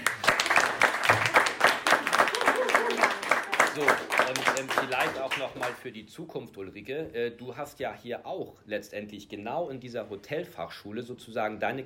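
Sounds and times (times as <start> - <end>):
group applause: 0.0 - 5.8
speech: 3.8 - 11.8.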